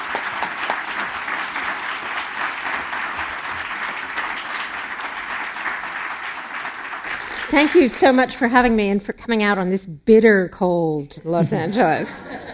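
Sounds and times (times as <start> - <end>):
audience applause welcoming a speaker at a library talk: 0.0 - 8.6
speech: 7.5 - 12.5
laughter: 11.3 - 12.5.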